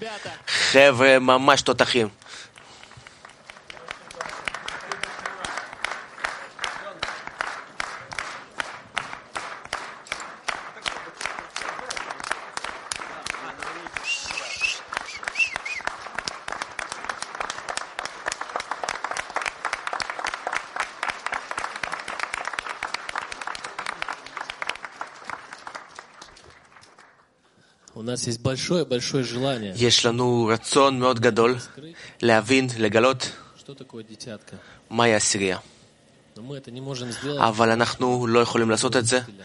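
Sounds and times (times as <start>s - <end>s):
speech: 0.0s - 2.5s, 28.2s - 35.7s, 36.4s - 39.4s
audience applause: 2.3s - 27.4s.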